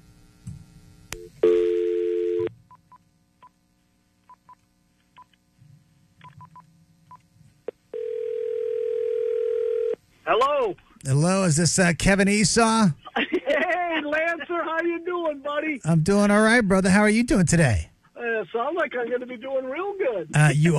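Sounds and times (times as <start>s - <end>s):
telephone dial tone: 1.4s - 2.5s, 8.0s - 10.0s
speech: 10.6s - 13.0s, 14.7s - 17.9s, 18.7s - 20.7s
laughter: 13.0s - 15.1s.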